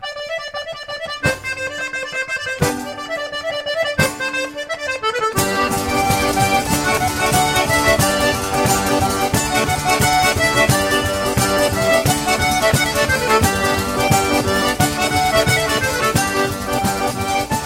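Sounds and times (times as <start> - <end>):
pizzica tarantata folk dance music: 0.0 - 17.6.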